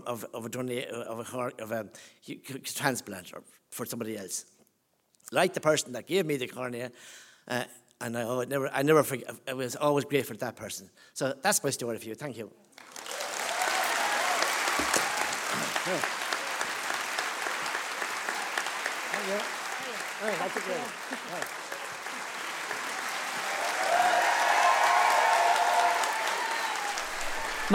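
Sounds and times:
speech: 0.0 - 4.6, 5.2 - 13.0, 15.9 - 16.2, 20.2 - 21.6
crowd applauding: 12.8 - 27.7.

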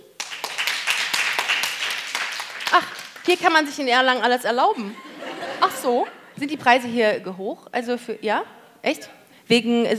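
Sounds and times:
audience clapping: 0.0 - 3.8
speech: 2.7 - 5.1, 5.8 - 9.9
laughter: 4.7 - 6.4.

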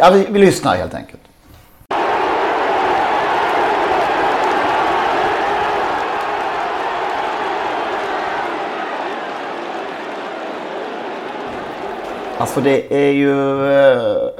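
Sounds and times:
speech: 0.0 - 1.2, 12.4 - 14.3
large crowd of race spectators cheering: 1.9 - 13.0.

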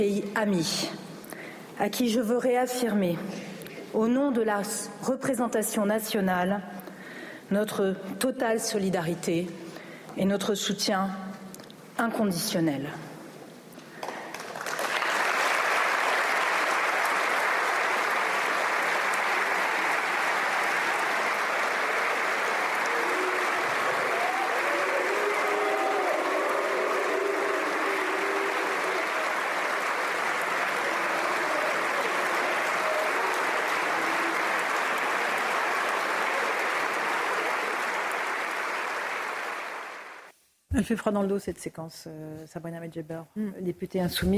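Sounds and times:
speech: 0.0 - 1.0, 1.8 - 6.9, 7.5 - 11.3, 12.0 - 13.0, 40.8 - 44.3
parliament applause in a large chamber: 14.0 - 40.3.

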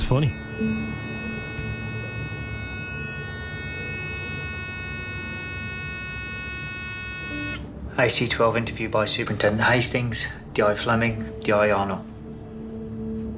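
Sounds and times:
long electronic beep from an interview recorder: 0.0 - 7.7
speech: 0.1 - 1.1, 8.0 - 12.1.

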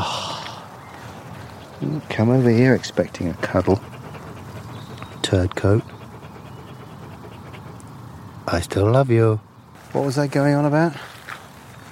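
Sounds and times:
dog panting: 1.0 - 8.6
speech: 1.8 - 3.9, 5.3 - 6.0, 8.5 - 11.1.

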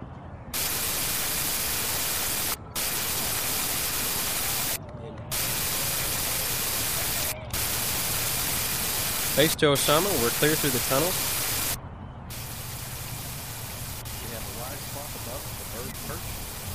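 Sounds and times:
shortwave radio static while scanning: 0.6 - 16.7
speech: 9.4 - 11.3.

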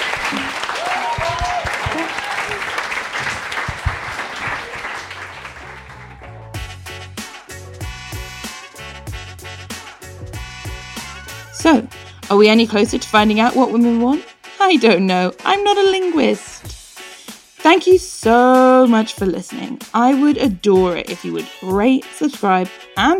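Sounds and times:
audience applause: 0.0 - 6.6
speech: 0.3 - 0.6, 1.2 - 3.4, 11.6 - 16.5, 17.7 - 23.1.

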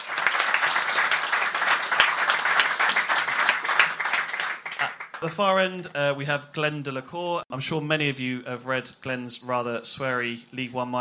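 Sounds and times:
crowd applauding: 0.0 - 5.4
speech: 5.2 - 10.9.

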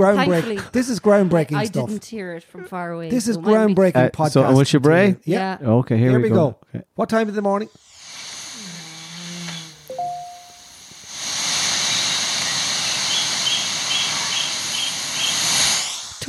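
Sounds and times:
speech: 0.0 - 7.9
bird call in recording: 11.9 - 15.7.

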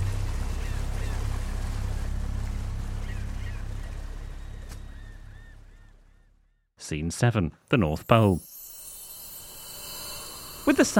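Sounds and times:
broadband wash noise: 0.0 - 5.0
boat engine pushed to full throttle: 0.0 - 6.1
faint honking bird-like calls: 0.3 - 6.7
speech: 6.9 - 8.5, 10.6 - 10.9.

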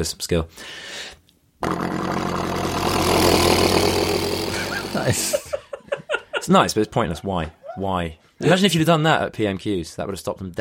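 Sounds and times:
speech: 0.0 - 2.2, 5.0 - 5.6, 6.4 - 10.6
person imitating a helicopter with mouth: 1.6 - 5.4
laughter: 4.5 - 8.6.

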